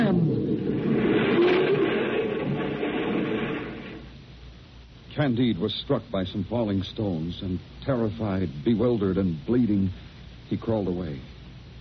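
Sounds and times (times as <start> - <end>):
earthquake rumbling: 0.0 - 4.1
speech: 5.2 - 11.3.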